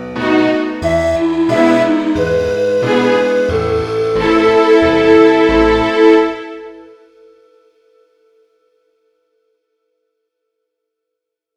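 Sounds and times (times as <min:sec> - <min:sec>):
orchestra: 0:00.0 - 0:07.0.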